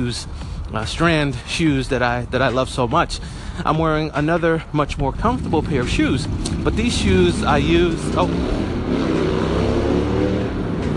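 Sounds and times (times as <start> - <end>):
speech: 0.0 - 9.2
passing motorcycle engine roar: 4.9 - 10.9.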